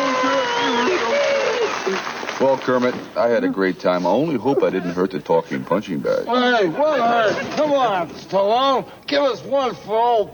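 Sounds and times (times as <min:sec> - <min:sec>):
audience applause: 0:00.0 - 0:03.2
speech: 0:02.4 - 0:10.3.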